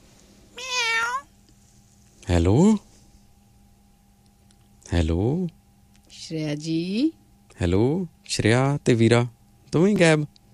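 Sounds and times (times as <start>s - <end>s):
cat meowing: 0.6s - 1.3s
speech: 2.3s - 2.9s, 5.0s - 5.6s, 6.3s - 10.4s.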